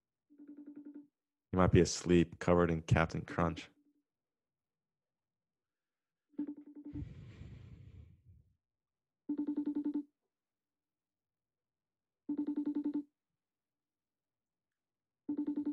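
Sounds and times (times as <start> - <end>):
speech: 1.5 - 3.8
FaceTime video call ringtone: 9.3 - 10.0, 12.3 - 13.0, 15.3 - 15.7.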